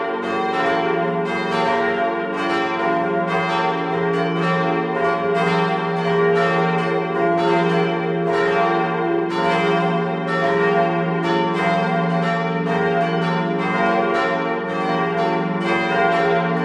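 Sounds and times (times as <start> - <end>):
church bells ringing: 0.0 - 16.6.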